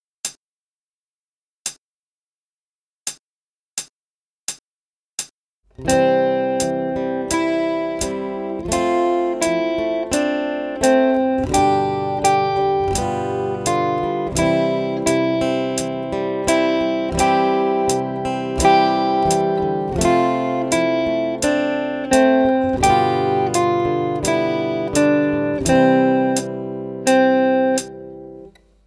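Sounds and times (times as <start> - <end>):
guitar played fast on 3 strings: 5.8 - 28.6.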